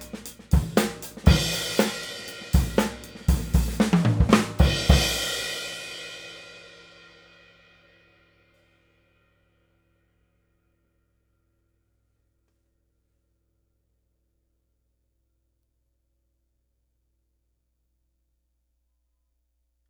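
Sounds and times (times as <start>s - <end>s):
20-inch HHX cymbal: 0.0s - 8.6s.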